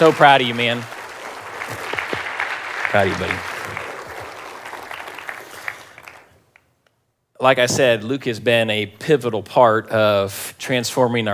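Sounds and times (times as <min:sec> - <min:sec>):
speech: 0:00.0 - 0:01.0, 0:02.9 - 0:03.5, 0:07.4 - 0:11.3
round of applause: 0:00.0 - 0:06.7.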